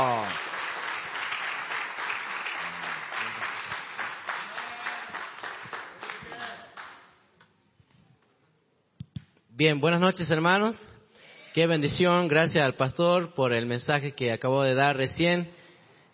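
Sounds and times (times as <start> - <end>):
audience applause: 0.0 - 7.1
speech: 9.6 - 10.9, 11.6 - 15.6.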